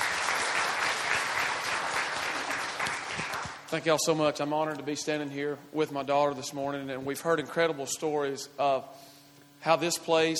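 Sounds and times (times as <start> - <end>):
audience applause welcoming speakers to the stage: 0.0 - 3.7
speech: 3.7 - 10.3.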